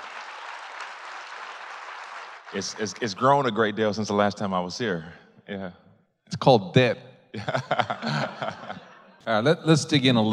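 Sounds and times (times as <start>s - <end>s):
audience applause welcoming a guest at Red Ventures: 0.0s - 3.0s
speech: 2.5s - 5.8s, 6.4s - 10.3s
laughter: 7.4s - 10.3s.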